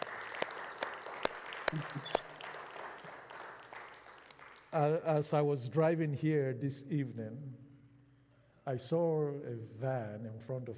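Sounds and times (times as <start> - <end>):
audience clapping: 0.0 - 5.1
speech: 1.7 - 2.3, 4.7 - 7.6, 8.7 - 10.7.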